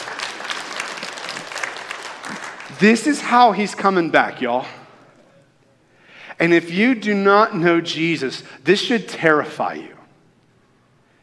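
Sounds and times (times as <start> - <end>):
audience clapping: 0.0 - 3.5
speech: 2.8 - 4.8, 6.4 - 10.0.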